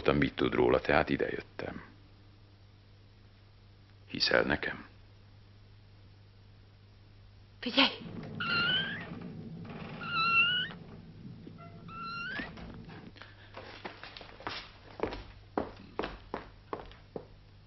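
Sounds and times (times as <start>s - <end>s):
speech: 0.1s - 1.9s, 4.1s - 4.9s, 7.6s - 8.5s
footsteps of someone walking around outside, below: 8.1s - 17.3s
cat meowing: 10.0s - 10.8s.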